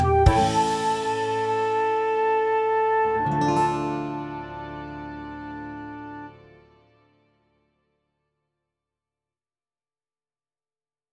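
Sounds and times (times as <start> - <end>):
instrumental church chant: 0.0 - 7.0.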